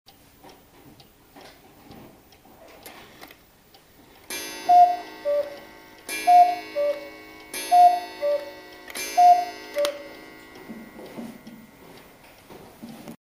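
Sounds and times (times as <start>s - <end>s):
cuckoo clock: 4.3s - 12.0s.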